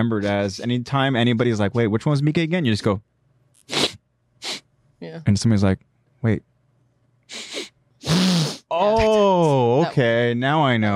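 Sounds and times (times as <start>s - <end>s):
speech: 0.0s - 3.1s, 5.0s - 6.5s, 8.1s - 10.9s
person imitating loud sniffing: 3.6s - 4.6s, 7.3s - 8.7s.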